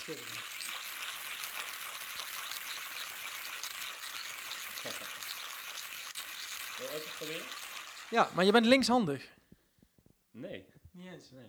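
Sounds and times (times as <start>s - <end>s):
manual hand grinder grinding: 0.0s - 8.8s
speech: 0.1s - 0.4s, 6.9s - 9.4s.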